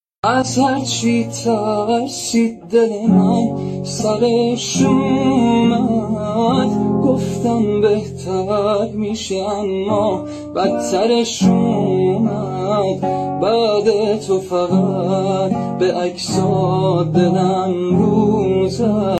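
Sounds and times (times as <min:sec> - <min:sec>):
guitar: 0:00.2 - 0:19.1.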